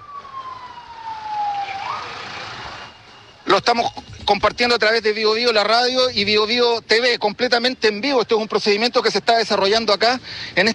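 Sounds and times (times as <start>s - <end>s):
ambulance sirens approaching: 0.0s - 5.8s
speech: 3.5s - 10.7s.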